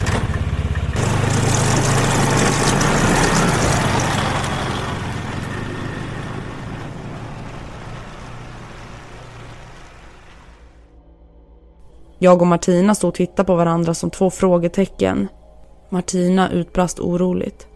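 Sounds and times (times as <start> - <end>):
snowmobile engine starting and speeding away: 0.0 - 10.8
speech: 12.2 - 17.7.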